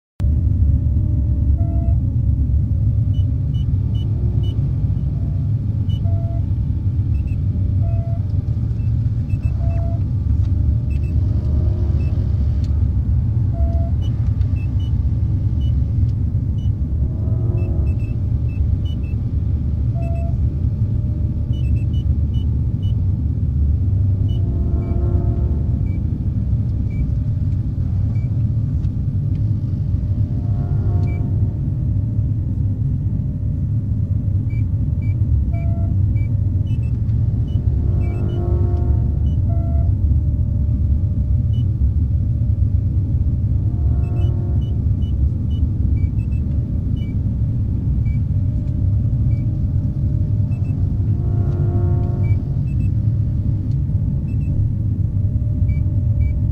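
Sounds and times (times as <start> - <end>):
ship ambience: 0.2 - 56.5.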